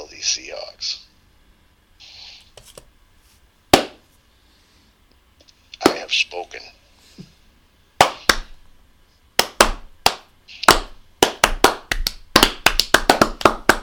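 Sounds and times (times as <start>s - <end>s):
speech: 0.2s - 1.1s, 6.1s - 7.3s
awkward slow hand clapping: 8.0s - 8.5s, 9.4s - 13.8s.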